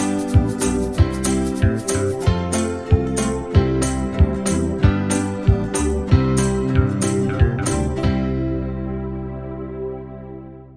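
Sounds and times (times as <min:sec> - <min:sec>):
faster banjo backing track in C: 0:00.0 - 0:09.3.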